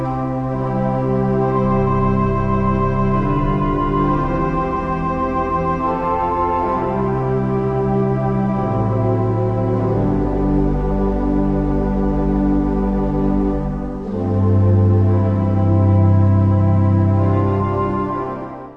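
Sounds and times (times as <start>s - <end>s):
cathedral organ: 0.0s - 18.7s.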